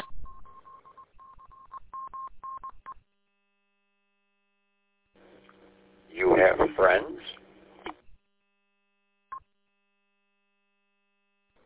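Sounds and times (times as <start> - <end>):
phone dialing tones: 0.0 - 3.0.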